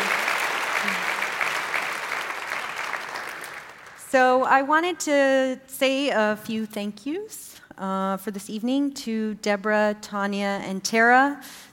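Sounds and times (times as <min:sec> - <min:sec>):
audience applause: 0:00.0 - 0:04.0
speech: 0:04.1 - 0:11.7.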